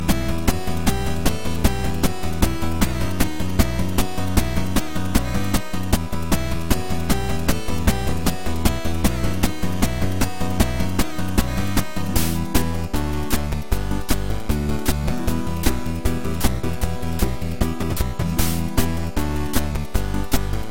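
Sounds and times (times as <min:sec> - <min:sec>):
8-bit music: 0:00.0 - 0:20.7.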